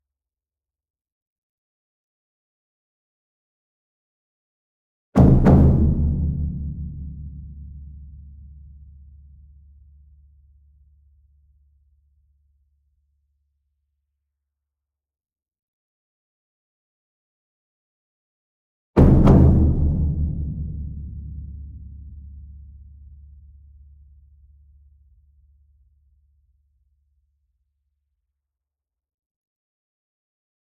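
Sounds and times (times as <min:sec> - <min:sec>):
large double concert bass drum in an ensemble: 0:05.2 - 0:08.3, 0:19.0 - 0:22.4.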